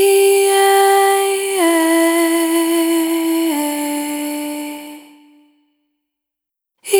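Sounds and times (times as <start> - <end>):
single voice melodic loops: 0.0 - 5.5.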